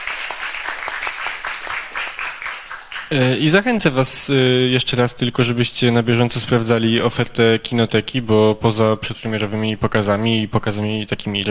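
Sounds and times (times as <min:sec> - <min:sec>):
audience applause: 0:00.0 - 0:03.3
speech: 0:03.1 - 0:11.4.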